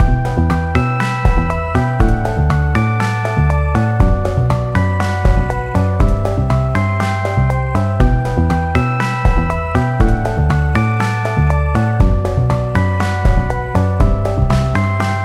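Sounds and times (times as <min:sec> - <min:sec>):
jingle: 0:00.0 - 0:15.2.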